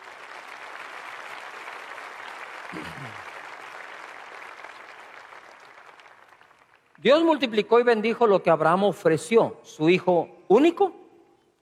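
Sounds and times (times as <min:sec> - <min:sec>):
audience applauding: 0:00.0 - 0:07.0
speech: 0:02.7 - 0:03.3, 0:07.0 - 0:11.0.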